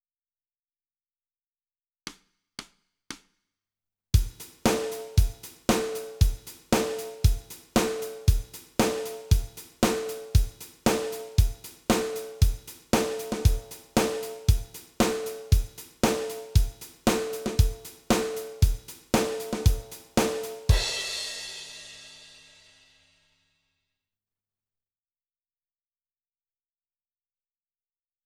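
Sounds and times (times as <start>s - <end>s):
drums: 4.2s - 23.0s.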